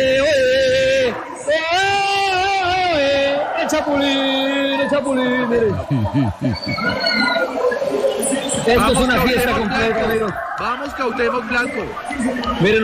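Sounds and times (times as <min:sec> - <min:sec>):
football fans singing a drawn-out chant: 0:00.0 - 0:06.1
football fans cheering and shouting: 0:00.0 - 0:12.8
laughter: 0:02.9 - 0:07.4
speech: 0:04.9 - 0:12.8.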